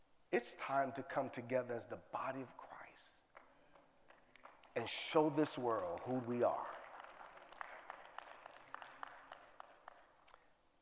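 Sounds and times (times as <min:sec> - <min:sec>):
speech: 0:00.3 - 0:03.1, 0:04.8 - 0:06.8
audience clapping hands: 0:03.3 - 0:10.6.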